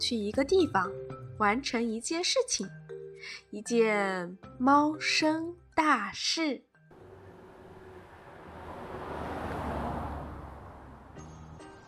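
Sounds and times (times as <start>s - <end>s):
speech: 0.0s - 6.7s
car slowly pulling up and stopping: 6.9s - 11.8s.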